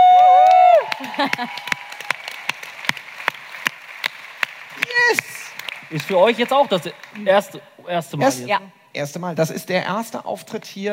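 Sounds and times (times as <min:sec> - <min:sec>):
audience applause: 0:00.0 - 0:07.5
speech: 0:01.2 - 0:01.8, 0:05.9 - 0:10.9.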